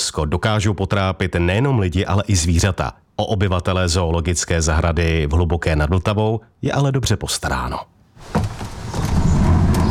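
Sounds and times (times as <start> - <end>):
speech: 0.1 - 8.5
large walk-in freezer door opening: 8.2 - 9.8.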